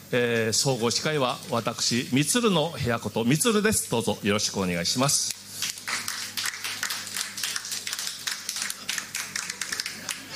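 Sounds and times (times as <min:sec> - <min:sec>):
speech: 0:00.1 - 0:05.4
audience clapping: 0:05.3 - 0:10.3.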